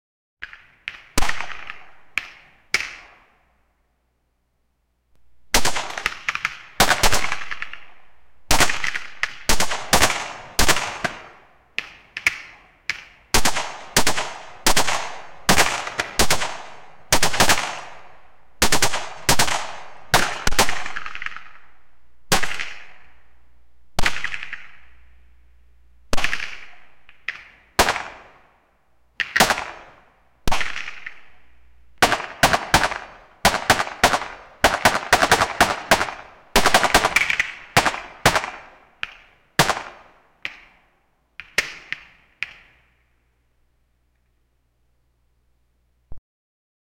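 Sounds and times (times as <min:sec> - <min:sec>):
bullet ricochets: 0:00.4 - 0:03.2, 0:05.5 - 0:07.9, 0:08.5 - 0:18.0, 0:18.6 - 0:21.7, 0:22.3 - 0:23.2, 0:24.0 - 0:25.2, 0:26.1 - 0:28.3, 0:29.2 - 0:40.6
pistol shots in a gunfight: 0:05.5 - 0:25.3, 0:26.1 - 0:28.5, 0:29.2 - 0:38.8, 0:39.6 - 0:40.1.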